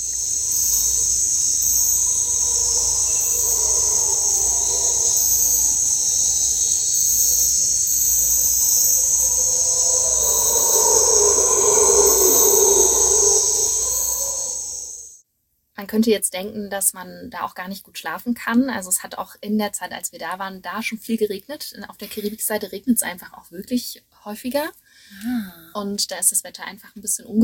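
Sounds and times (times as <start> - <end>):
howler monkeys calling loudly in forest: 0.0 - 15.0
speech: 15.9 - 27.4.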